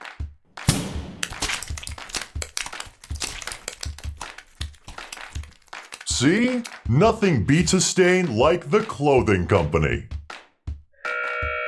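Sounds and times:
meat sauce cannon firing: 0.6 - 4.2
speech: 6.2 - 10.1.

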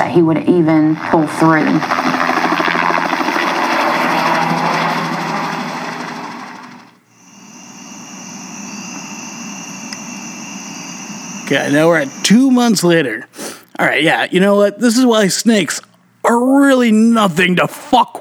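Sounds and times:
speech: 0.0 - 2.2, 11.5 - 18.1
helicopter flying: 0.0 - 13.2.

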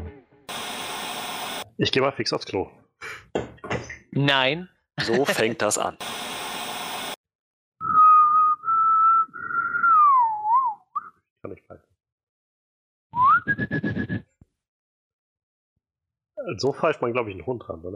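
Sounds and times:
speech: 1.8 - 2.8, 4.1 - 6.1, 16.5 - 17.9
laughter: 5.0 - 5.6
whistled four-note signal tune: 7.8 - 11.2, 13.1 - 14.2.

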